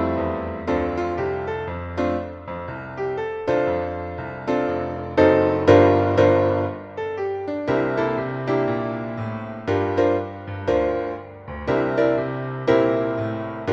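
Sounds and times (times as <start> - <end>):
piano note Eb: 0.0 - 13.7.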